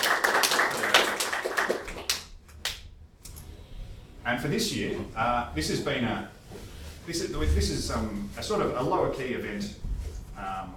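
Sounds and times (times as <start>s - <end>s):
audience applause: 0.0s - 2.3s
speech: 4.4s - 10.7s.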